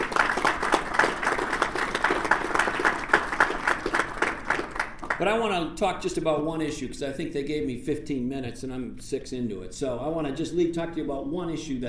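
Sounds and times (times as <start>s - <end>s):
audience applause: 0.0s - 5.3s
speech: 5.2s - 11.8s.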